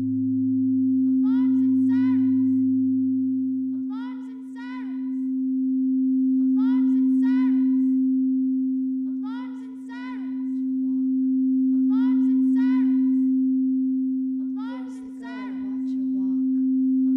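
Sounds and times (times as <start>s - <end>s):
alarms: 0.0s - 17.1s.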